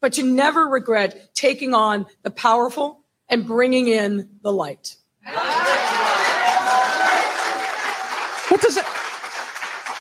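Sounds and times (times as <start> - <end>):
speech: 0.0 - 5.6, 8.5 - 9.0
clapping: 5.5 - 9.9.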